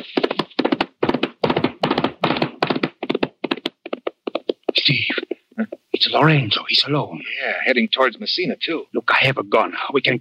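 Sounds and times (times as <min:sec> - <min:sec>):
horse hooves clopping: 0:00.0 - 0:05.9
speech: 0:04.9 - 0:10.1.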